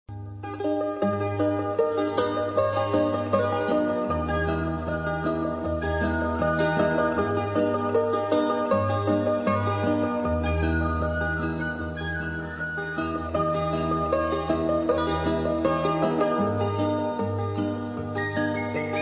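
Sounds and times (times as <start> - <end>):
melody: 0.5 - 19.0.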